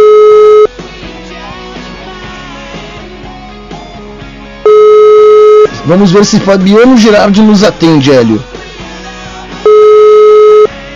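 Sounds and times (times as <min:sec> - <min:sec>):
telephone busy signal on an unanswered urgent call: 0:00.0 - 0:00.7, 0:04.7 - 0:05.7, 0:09.7 - 0:10.7
speech: 0:05.9 - 0:08.5.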